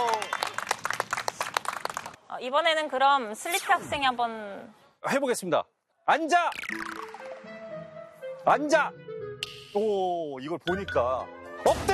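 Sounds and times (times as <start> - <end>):
small group of people clapping: 0.0 - 2.2
speech: 2.4 - 6.8, 8.4 - 9.0, 9.7 - 11.9.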